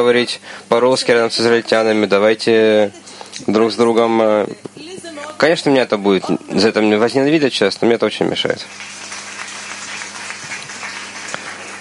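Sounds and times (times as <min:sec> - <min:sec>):
speech: 0:00.0 - 0:09.0
audience applause, ovation: 0:08.6 - 0:11.7.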